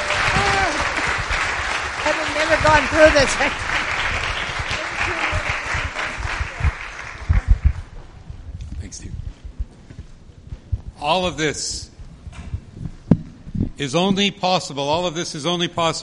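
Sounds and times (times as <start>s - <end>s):
audience applause: 0.0s - 7.9s
speech: 2.6s - 3.7s, 11.1s - 11.9s, 13.8s - 16.0s.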